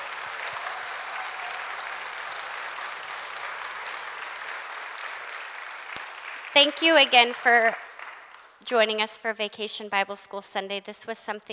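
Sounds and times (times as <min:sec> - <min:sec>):
audience applause: 0:00.0 - 0:08.6
speech: 0:06.6 - 0:07.8, 0:08.6 - 0:11.5.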